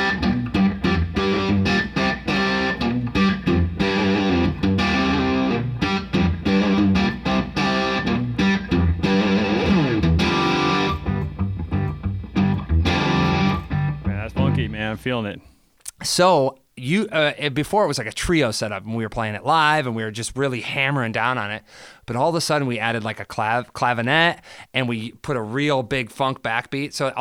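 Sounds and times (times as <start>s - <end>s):
distorted electric guitar riff on open strings: 0.0s - 15.1s
speech: 15.1s - 27.2s.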